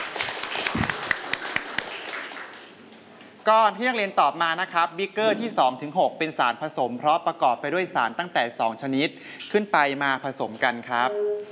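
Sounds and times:
classroom students applauding their classmates: 0.0 - 2.8
speech: 3.5 - 11.4.

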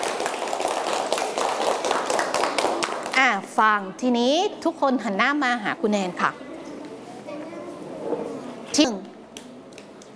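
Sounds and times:
people clapping: 0.0 - 3.4
speech: 3.4 - 6.4, 8.8 - 9.1.

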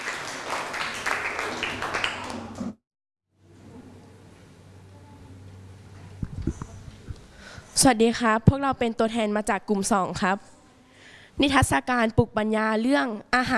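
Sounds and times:
classroom applause: 0.0 - 2.8
speech: 7.8 - 10.5, 11.4 - 13.5.

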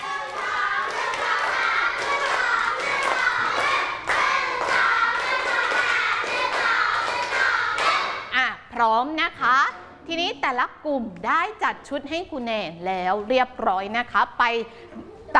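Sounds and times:
group clapping in unison: 0.0 - 8.3
speech: 8.8 - 15.3.

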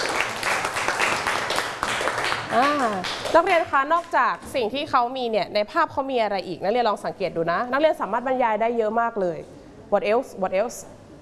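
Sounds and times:
classroom clapping: 0.0 - 3.4
speech: 2.5 - 11.0.

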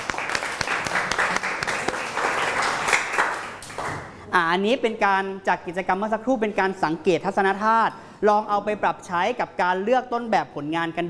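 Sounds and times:
hands clapping: 0.0 - 4.1
speech: 4.4 - 11.0.

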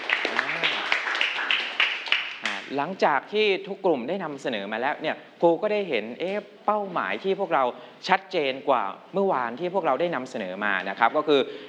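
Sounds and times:
classroom applause: 0.0 - 2.7
speech: 2.7 - 11.6.

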